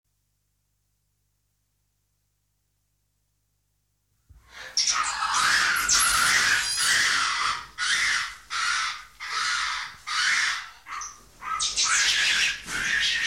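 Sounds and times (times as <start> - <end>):
monkey screeching and squawking: 4.6 - 13.2.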